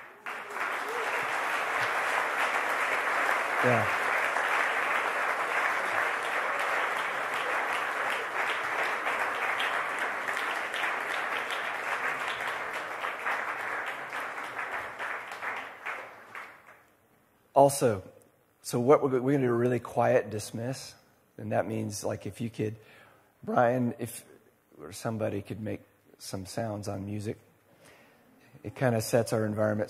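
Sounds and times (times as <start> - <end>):
audience applauding: 0.0 - 16.8
speech: 3.6 - 4.0, 17.6 - 18.1, 18.7 - 27.5, 28.6 - 29.8.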